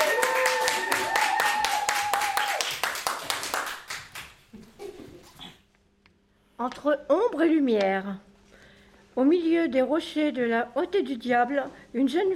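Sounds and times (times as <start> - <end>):
sustained high cheer: 0.0 - 3.6
audience applause for a slam performance: 0.0 - 4.4
speech: 6.6 - 8.3, 9.2 - 12.3.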